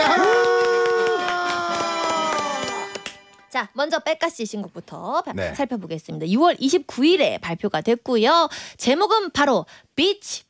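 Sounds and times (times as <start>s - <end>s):
applause: 0.0s - 3.4s
speech: 3.7s - 10.4s.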